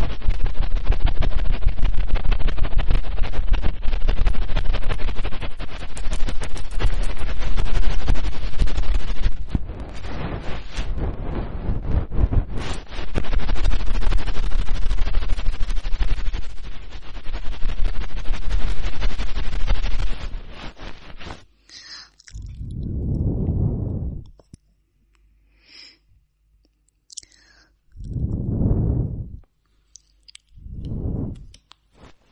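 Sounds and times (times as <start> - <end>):
hard ear cleaning scraping rustle: 0.0 - 21.5
deep whooshing swells: 22.4 - 24.3, 28.0 - 29.4, 30.5 - 31.6.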